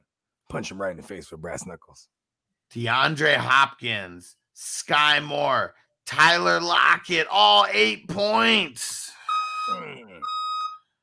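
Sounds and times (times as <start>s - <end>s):
speech: 0.5s - 10.4s
truck reversing alarm beeps: 9.2s - 11.0s.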